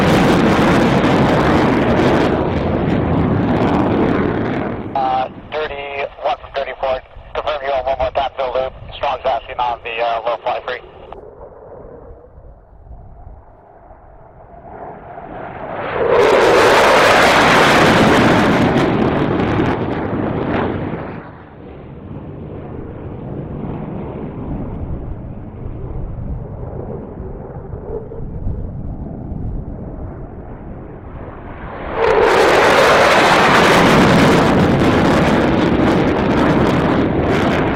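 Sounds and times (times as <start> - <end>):
jet engine: 0.0 - 37.7
radio chatter: 5.0 - 11.1.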